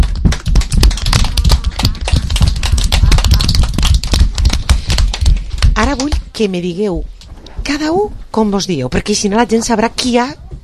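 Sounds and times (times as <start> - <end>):
applause: 0.0 - 6.2
speech: 6.4 - 10.4.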